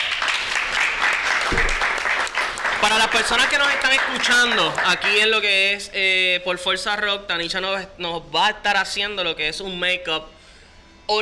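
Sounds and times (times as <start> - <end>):
audience applause: 0.0 - 5.1
speech: 2.9 - 10.4.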